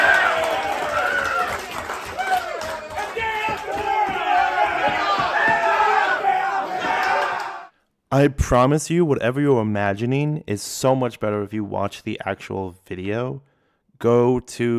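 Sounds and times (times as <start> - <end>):
hockey players yelling and cheering celebrating head coach's 200th win: 0.0 - 7.7
speech: 8.1 - 14.7.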